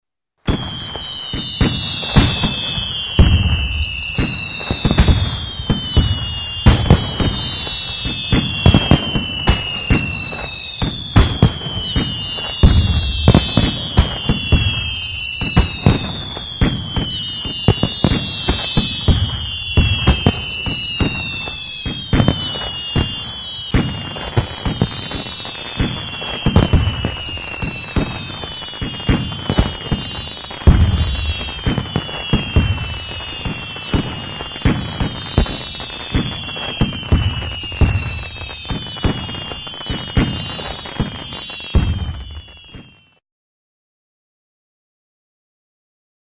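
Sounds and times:
fireworks: 0.4 - 43.2.

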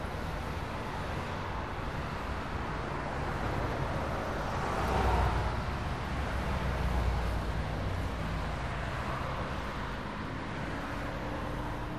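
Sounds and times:
road noise: 0.0 - 11.9.

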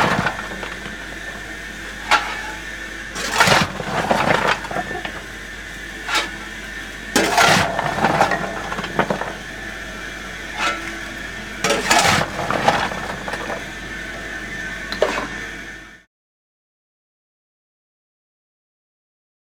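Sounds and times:
coal shoveled into a firebox: 0.0 - 14.2, 14.9 - 15.4.

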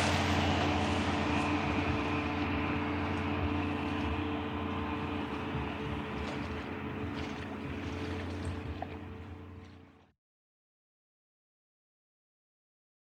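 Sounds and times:
water skiing: 0.0 - 10.1.

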